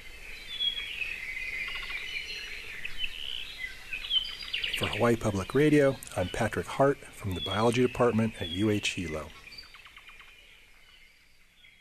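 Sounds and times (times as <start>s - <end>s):
high-pitched insect or forest noise: 0.0s - 4.6s
rare Hawaiian forest bird singing: 0.0s - 11.7s
speech: 4.8s - 9.4s.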